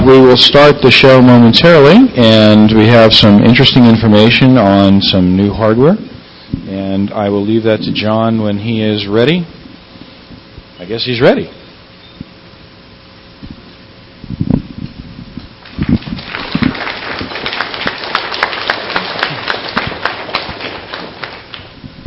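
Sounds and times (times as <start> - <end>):
speech: 0.1 - 6.1, 7.0 - 9.6, 10.8 - 11.6
audience clapping: 15.6 - 21.8.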